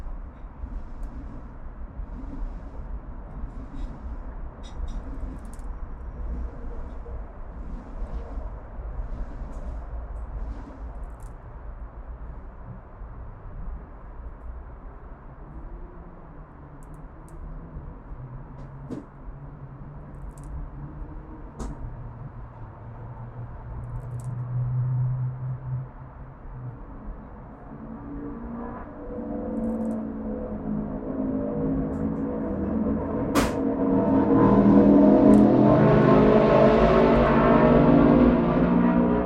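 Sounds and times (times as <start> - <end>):
traffic rumble in an Oakland, CA urban backyard: 0.0 - 39.2
vehicle engine roar: 15.6 - 39.2.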